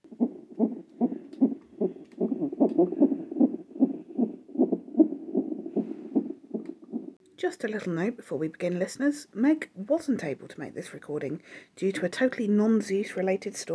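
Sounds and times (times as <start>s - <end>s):
rapid heartbeat of an unborn baby on a monitor: 0.0s - 7.2s
speech: 2.8s - 3.1s, 7.5s - 13.7s.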